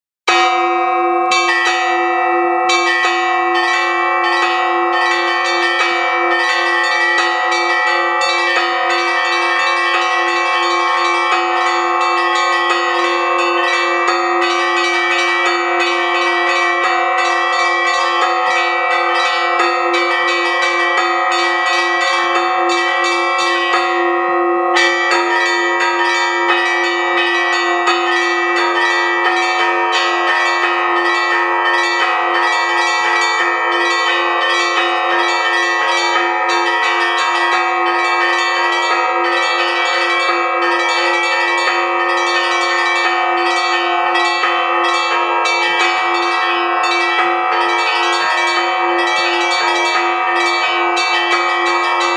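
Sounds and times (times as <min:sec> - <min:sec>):
bell ringing: 0:00.3 - 0:52.1.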